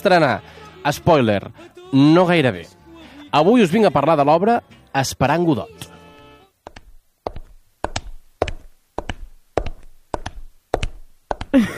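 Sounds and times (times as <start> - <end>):
speech: 0.0 - 5.9, 11.6 - 11.7
actress's heel footsteps on a stage: 6.7 - 11.7.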